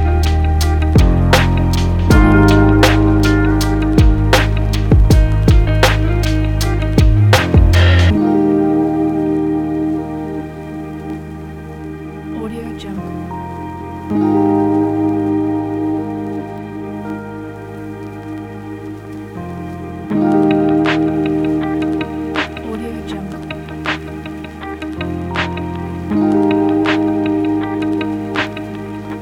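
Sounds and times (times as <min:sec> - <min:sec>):
chill lo-fi hip hop music: 0:00.0 - 0:29.1.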